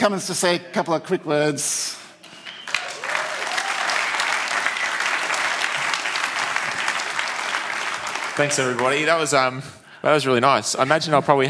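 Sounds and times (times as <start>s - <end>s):
speech: 0.0s - 2.0s, 8.4s - 11.4s
audience applause: 2.4s - 9.4s.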